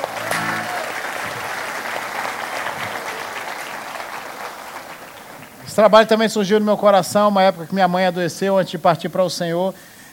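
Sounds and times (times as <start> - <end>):
round of applause: 0.0 - 5.6
speech: 5.8 - 10.1.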